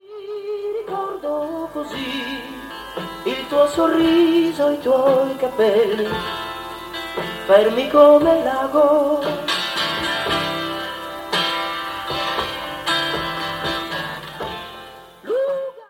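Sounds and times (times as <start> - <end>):
person singing: 0.0 - 6.6, 7.2 - 10.6, 15.0 - 15.8
guitar: 0.0 - 15.8.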